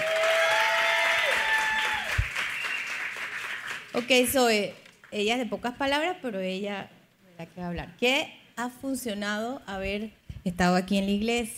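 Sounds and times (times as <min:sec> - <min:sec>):
audience applause: 0:00.0 - 0:04.2
speech: 0:03.9 - 0:11.5.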